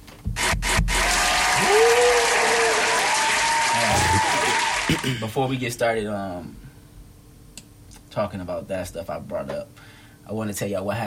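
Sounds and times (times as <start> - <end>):
clapping applause: 0.4 - 5.2
speech: 5.1 - 6.6, 8.2 - 11.0.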